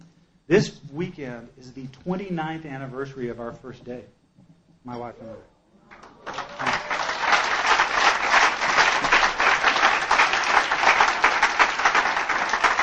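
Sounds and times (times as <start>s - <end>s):
speech: 0.5s - 4.2s, 4.8s - 5.5s
audience applause: 5.9s - 12.8s.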